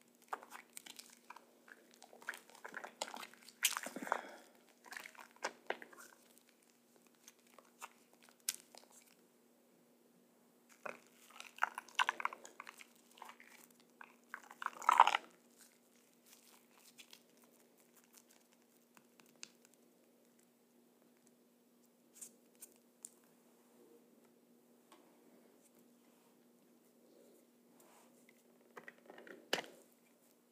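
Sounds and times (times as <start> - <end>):
soapy sudsy squishing: 0.0 - 9.2, 10.7 - 20.4.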